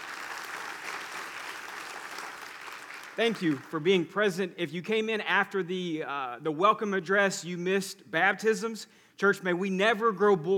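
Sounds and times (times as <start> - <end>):
church congregation applauding during a Sunday service: 0.0 - 3.9
speech: 3.2 - 10.5.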